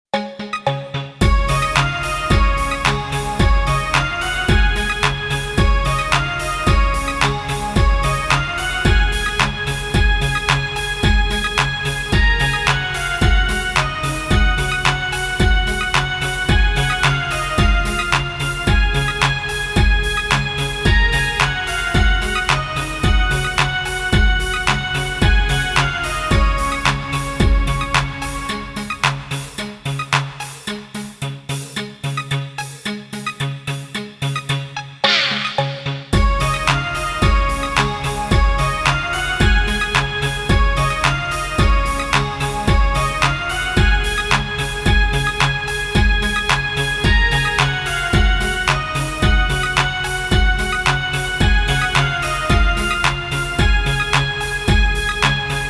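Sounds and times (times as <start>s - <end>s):
karaoke backing track: 0.5s - 55.6s.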